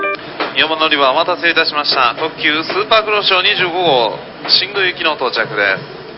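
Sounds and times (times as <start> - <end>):
Super Kuroshio 25 train in Wakayama: 0.2 - 6.1.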